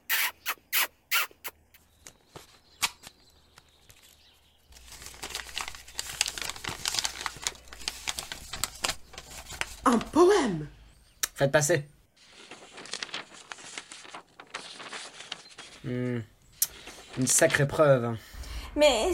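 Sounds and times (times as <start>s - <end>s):
paper letter being unfolded and crinkled: 2.0s - 10.2s, 12.2s - 17.7s
speech: 9.9s - 10.8s, 11.4s - 11.9s, 15.9s - 16.3s, 17.2s - 19.1s.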